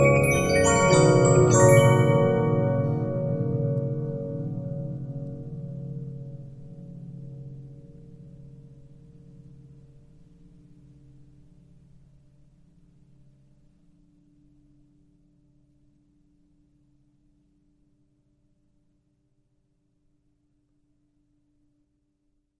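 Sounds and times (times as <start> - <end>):
Regina 15-inch disc music box: 0.0 - 4.0.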